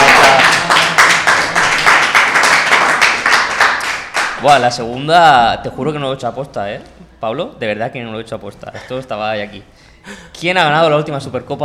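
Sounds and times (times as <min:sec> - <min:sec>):
applause: 0:00.0 - 0:04.7
speech: 0:04.4 - 0:11.6.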